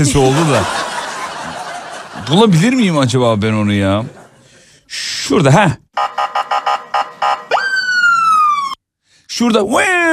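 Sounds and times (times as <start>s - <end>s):
speech: 0.0s - 0.8s, 2.3s - 4.2s, 4.9s - 6.1s, 9.4s - 10.1s
laughter: 0.0s - 2.6s
police motorcycle siren: 6.0s - 8.8s.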